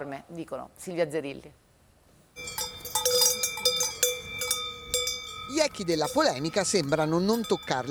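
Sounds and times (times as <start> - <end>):
speech: 0.0 - 1.7, 5.5 - 7.8
cowbells on grazing cows: 2.4 - 7.8.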